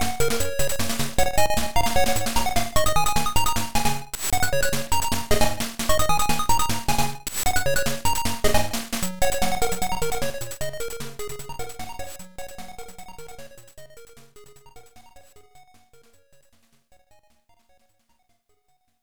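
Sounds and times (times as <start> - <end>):
background music: 0.0 - 13.5.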